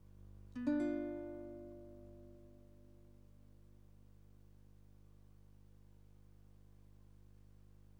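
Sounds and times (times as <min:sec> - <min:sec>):
guitar: 0:00.5 - 0:03.4.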